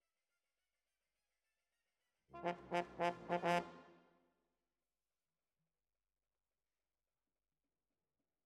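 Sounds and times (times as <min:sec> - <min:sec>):
horns: 0:02.4 - 0:04.0.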